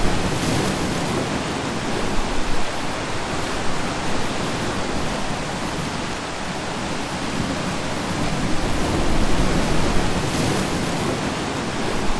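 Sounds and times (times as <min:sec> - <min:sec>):
rough waves: 0:00.0 - 0:12.1
strong wind: 0:00.0 - 0:12.1.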